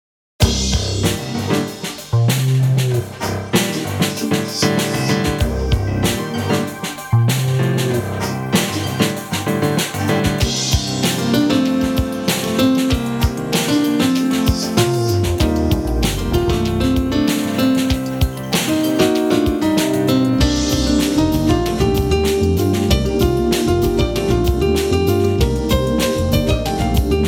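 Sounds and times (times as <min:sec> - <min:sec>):
improvised music in the city: 0:00.4 - 0:27.2.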